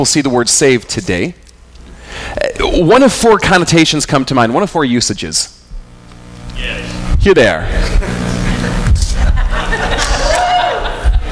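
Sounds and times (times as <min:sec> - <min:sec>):
speech: 0:00.0 - 0:01.4, 0:02.3 - 0:05.6, 0:06.6 - 0:08.1
audience chuckling and chatter: 0:07.8 - 0:11.2
audience cheering: 0:09.6 - 0:11.2.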